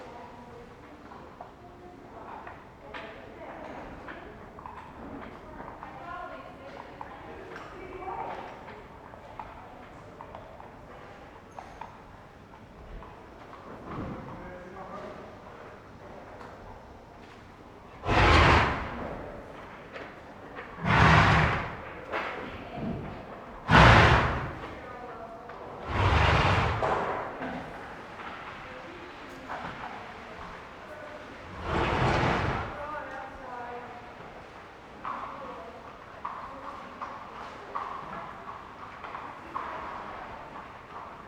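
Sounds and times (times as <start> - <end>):
animal snorts: 18.0 - 19.2, 20.8 - 22.0, 23.7 - 24.8, 25.8 - 27.1, 31.5 - 32.8.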